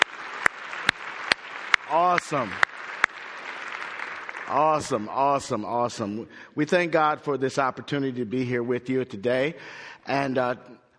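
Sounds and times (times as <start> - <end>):
audience clapping hands: 0.0 - 6.1
speech: 1.9 - 2.7, 4.5 - 10.8.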